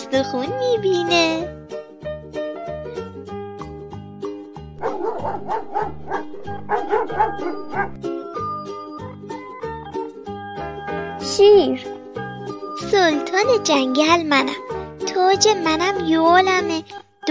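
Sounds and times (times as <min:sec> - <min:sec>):
speech: 0:00.1 - 0:01.6, 0:05.0 - 0:08.2, 0:11.3 - 0:11.9, 0:12.8 - 0:17.2
dog barking: 0:04.8 - 0:08.0.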